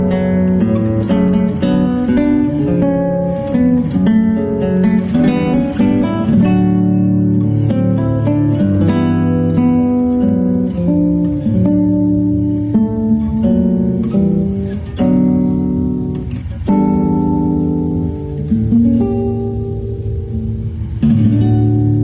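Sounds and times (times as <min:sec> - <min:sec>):
guitar instrumental: 0:00.0 - 0:22.0.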